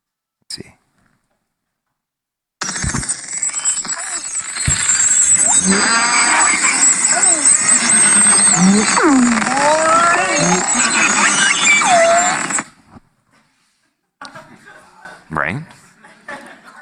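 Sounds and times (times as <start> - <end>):
beluga whale vocalizations recorded underwater: 5.5 - 12.6
speech: 5.6 - 6.1, 8.7 - 9.4.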